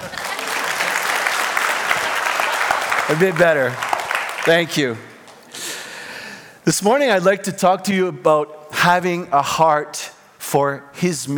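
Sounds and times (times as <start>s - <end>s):
audience applause: 0.0s - 4.8s
speech: 3.1s - 5.1s, 6.6s - 11.3s.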